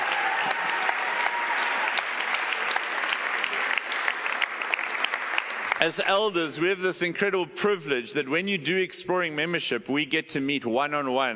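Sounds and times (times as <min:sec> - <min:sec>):
audience applause: 0:00.0 - 0:06.8
speech: 0:05.8 - 0:11.3.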